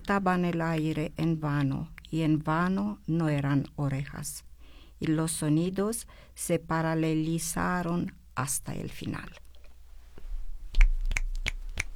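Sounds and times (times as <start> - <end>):
speech: 0.1 - 9.4
fingers snapping: 10.7 - 11.9.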